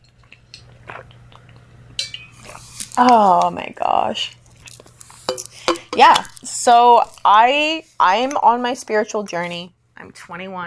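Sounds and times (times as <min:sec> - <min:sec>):
person drinking water: 0:00.6 - 0:01.7, 0:02.4 - 0:03.7, 0:04.3 - 0:08.2
speech: 0:03.0 - 0:04.4, 0:05.4 - 0:10.6.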